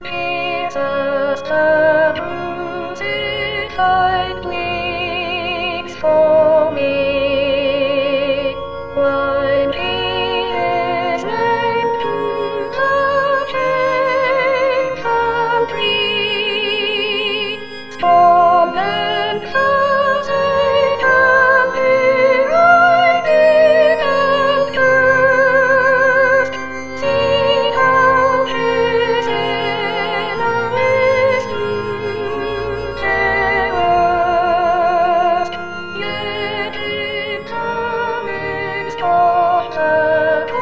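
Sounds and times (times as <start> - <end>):
soprano singing: 0.0 - 40.6.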